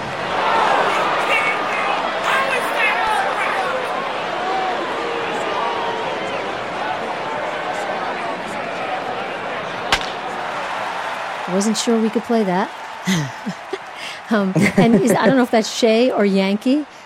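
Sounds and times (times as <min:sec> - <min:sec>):
crowd murmur at a baseball game: 0:00.0 - 0:10.8, 0:13.0 - 0:16.1
individual shouts at a baseball game: 0:00.8 - 0:03.9
sharp crack: 0:09.9 - 0:10.2
speech: 0:11.6 - 0:13.7, 0:14.3 - 0:16.9
laughter: 0:13.0 - 0:15.6.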